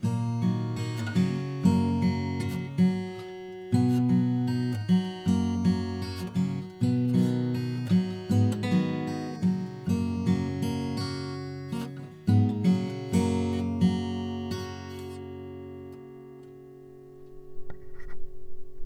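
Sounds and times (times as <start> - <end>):
guitar picking: 0.0 - 18.8.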